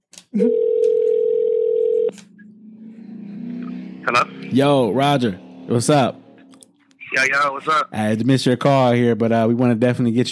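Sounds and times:
speech: 0:00.3 - 0:00.7, 0:04.1 - 0:06.2, 0:07.2 - 0:10.3
telephone dial tone: 0:00.4 - 0:02.2.

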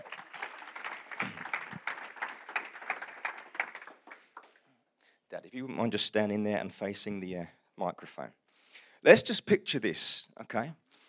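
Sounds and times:
crowd applauding: 0:00.0 - 0:04.7
speech: 0:05.4 - 0:08.4, 0:09.0 - 0:10.8.

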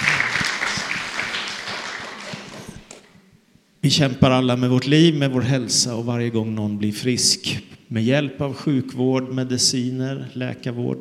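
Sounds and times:
audience applause: 0:00.0 - 0:03.2
speech: 0:03.8 - 0:10.9.

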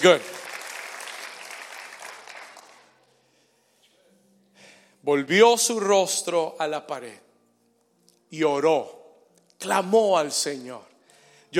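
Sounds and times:
speech: 0:00.0 - 0:00.4, 0:05.0 - 0:07.2, 0:08.3 - 0:09.0, 0:09.6 - 0:10.9
audience applauding loudly: 0:00.0 - 0:02.9.

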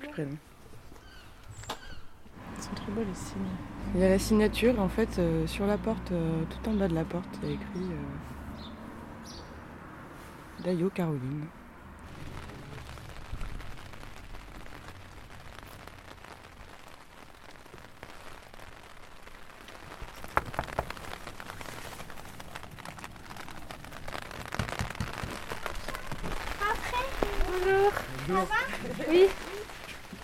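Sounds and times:
speech: 0:00.2 - 0:00.6, 0:02.9 - 0:08.4, 0:10.6 - 0:11.6
stormy rain outside: 0:02.3 - 0:07.8, 0:11.6 - 0:30.2.

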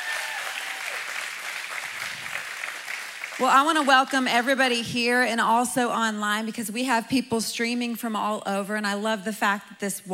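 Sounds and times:
audience applause at a Mother's Day church service: 0:00.0 - 0:04.3
speech: 0:03.4 - 0:10.1.

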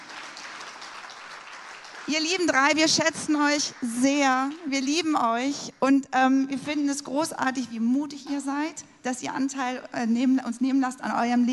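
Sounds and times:
audience applause welcoming family on stage: 0:00.0 - 0:05.0
speech: 0:02.1 - 0:11.5.

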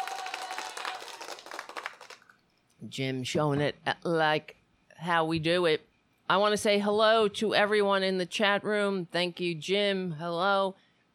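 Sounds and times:
applause: 0:00.0 - 0:02.4
speech: 0:02.8 - 0:10.8.

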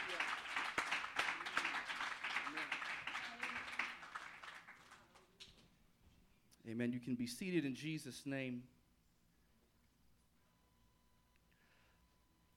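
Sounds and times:
audience clapping hands: 0:00.0 - 0:05.5
speech: 0:06.6 - 0:08.8.

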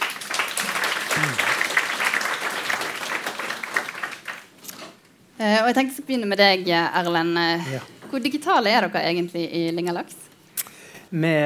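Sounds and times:
audience applause: 0:00.0 - 0:04.6
speech: 0:05.4 - 0:10.2, 0:11.1 - 0:11.4.

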